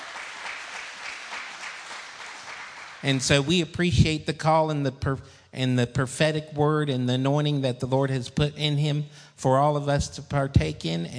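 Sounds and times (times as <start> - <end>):
church congregation clapping hands in praise: 0.0 - 3.6
speech: 3.0 - 11.1.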